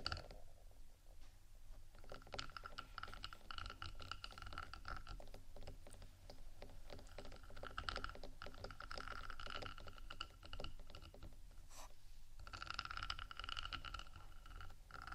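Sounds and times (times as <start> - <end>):
scratching and tapping on a microphone decorated with rhinestones: 0.0 - 0.4, 1.2 - 15.1.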